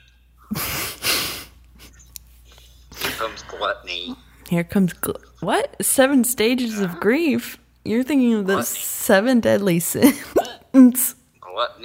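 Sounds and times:
speech: 0:03.2 - 0:11.8
hiccup: 0:10.4 - 0:10.7.

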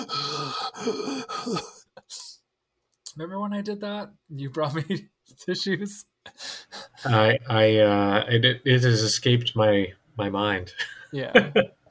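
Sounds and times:
person imitating heavy breathing into a phone: 0:00.0 - 0:02.4, 0:06.3 - 0:07.2
speech: 0:00.8 - 0:01.8, 0:03.2 - 0:11.8.

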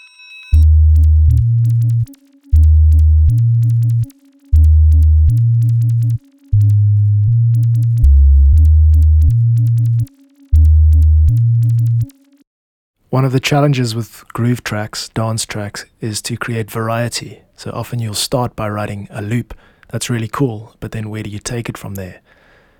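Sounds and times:
deep synth bassline: 0:00.6 - 0:12.4
speech: 0:13.2 - 0:22.4.

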